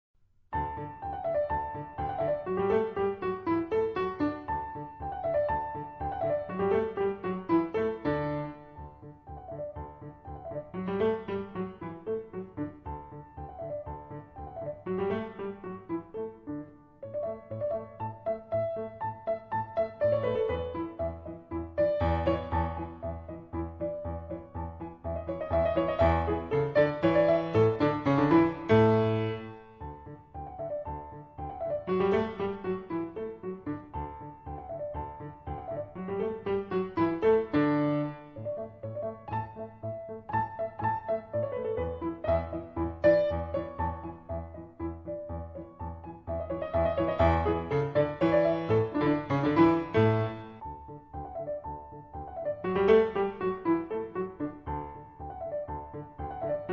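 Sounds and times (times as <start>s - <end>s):
musette in D major: 0.5s - 56.7s.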